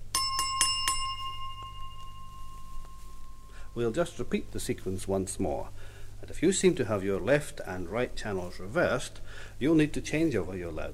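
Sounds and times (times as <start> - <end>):
wine glass struck, high ringing tone: 0.0 - 4.0
speech: 3.8 - 10.9.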